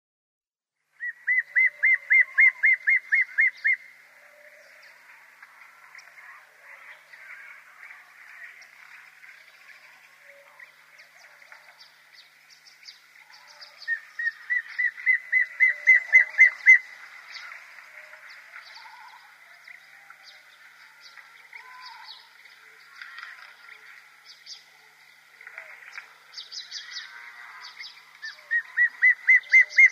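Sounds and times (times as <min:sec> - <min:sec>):
immature dark chanting goshawk calling: 0:01.0 - 0:03.8, 0:13.8 - 0:16.9, 0:28.2 - 0:29.9.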